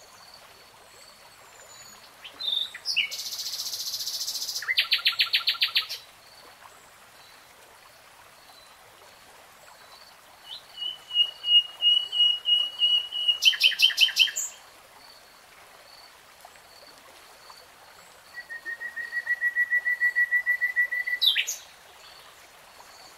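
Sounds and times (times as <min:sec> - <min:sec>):
nightingale singing: 0:02.2 - 0:06.0, 0:10.5 - 0:14.6, 0:18.3 - 0:21.6.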